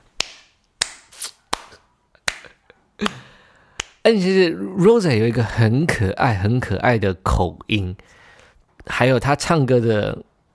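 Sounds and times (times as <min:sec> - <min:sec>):
hand clapping: 0:00.2 - 0:04.0
speech: 0:03.0 - 0:03.2, 0:04.0 - 0:08.2, 0:08.8 - 0:10.3.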